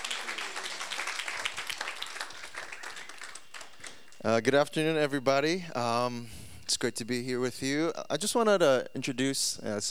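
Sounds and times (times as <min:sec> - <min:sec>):
audience applauding to welcome a pastor: 0:00.0 - 0:04.3
speech: 0:04.2 - 0:09.8.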